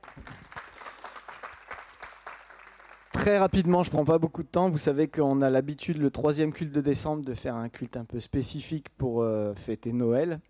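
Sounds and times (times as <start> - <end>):
audience applauding: 0.0 - 3.7
speech: 3.2 - 10.4.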